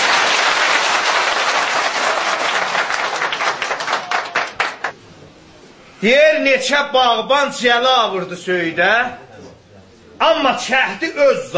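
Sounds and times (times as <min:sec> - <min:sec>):
audience clapping: 0:00.0 - 0:05.0
speech: 0:06.0 - 0:09.2, 0:10.2 - 0:11.5.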